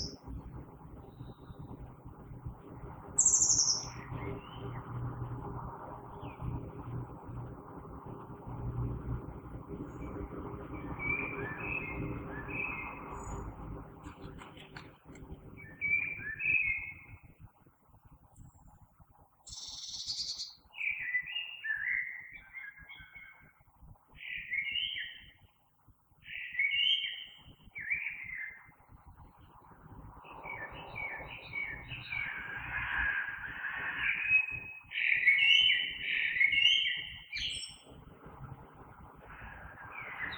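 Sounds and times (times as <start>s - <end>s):
common blackbird singing: 0.0s - 17.3s, 19.5s - 25.5s, 26.2s - 40.3s
low background rumble: 0.0s - 20.0s, 28.3s - 36.4s, 37.0s - 40.3s.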